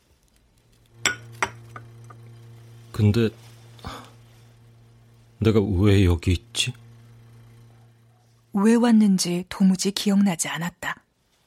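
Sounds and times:
low steady hum: 0.0s - 11.4s
glass being set down: 1.0s - 1.9s
speech: 3.0s - 3.5s, 5.4s - 6.8s, 8.5s - 11.0s.

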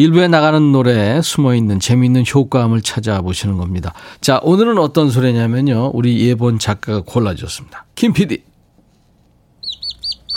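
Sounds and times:
speech: 0.0s - 8.5s
chick peeping: 9.6s - 10.3s.

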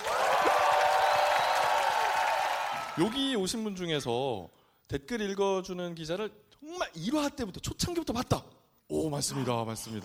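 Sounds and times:
audience applause: 0.0s - 3.4s
speech: 3.0s - 10.0s.

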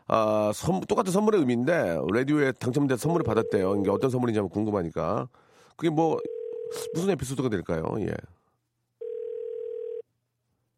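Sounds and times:
speech: 0.1s - 8.4s
telephone dial tone: 9.0s - 10.0s.

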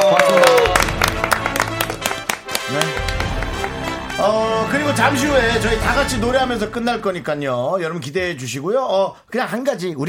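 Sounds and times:
audience clapping: 0.0s - 5.6s
speech: 4.2s - 10.0s.

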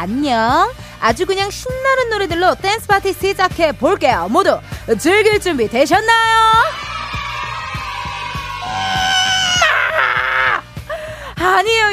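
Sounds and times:
speech: 0.0s - 6.8s, 11.4s - 11.9s
studio audience cheering and shouting: 6.5s - 10.6s.

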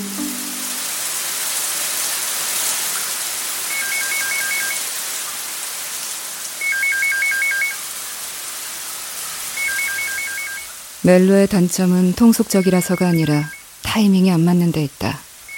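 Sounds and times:
phone ringing late at night: 3.7s - 4.9s, 6.6s - 7.8s, 9.6s - 10.7s, 12.4s - 13.6s
speech: 11.1s - 15.2s.

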